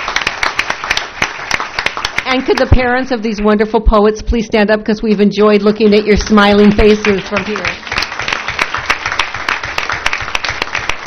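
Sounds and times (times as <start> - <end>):
audience applause at a board meeting: 0.0 - 2.8, 6.4 - 11.0
speech: 2.3 - 7.8.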